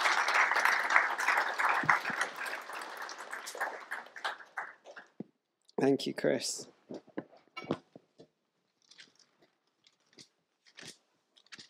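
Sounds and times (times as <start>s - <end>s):
audience applause: 0.0s - 5.2s
speech: 5.8s - 6.7s.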